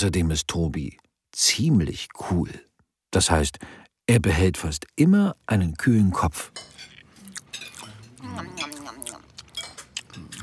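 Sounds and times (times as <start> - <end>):
speech: 0.0 - 6.8, 8.2 - 8.8
people chewing and smacking while eating: 6.5 - 10.4.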